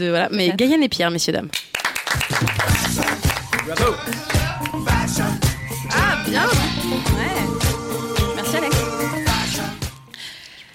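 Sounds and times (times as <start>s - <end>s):
speech: 0.0s - 7.7s
audience applause: 1.7s - 4.9s
tonal backing sound: 2.7s - 10.1s.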